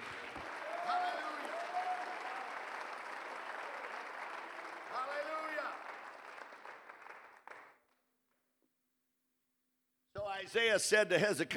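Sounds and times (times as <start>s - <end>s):
audience clapping: 0.0s - 8.4s
speech: 10.4s - 11.5s.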